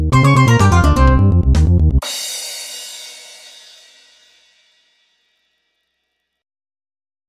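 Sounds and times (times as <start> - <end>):
MIDI menu music: 0.1 - 2.0.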